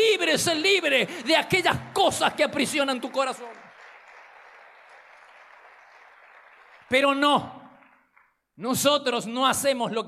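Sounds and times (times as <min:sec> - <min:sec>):
speech: 0:00.2 - 0:03.6, 0:06.9 - 0:07.6, 0:08.6 - 0:10.0
audience applause: 0:01.2 - 0:08.4.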